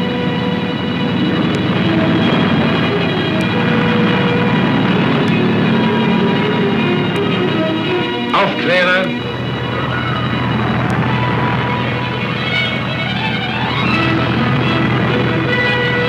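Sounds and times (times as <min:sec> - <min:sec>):
German Luftwaffe Stuka dive bomber engines roaring on take-off: 0:00.0 - 0:16.0.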